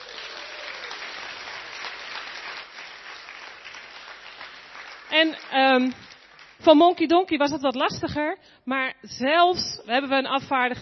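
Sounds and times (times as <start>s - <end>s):
audience applause: 0.0s - 6.6s
speech: 5.1s - 10.8s.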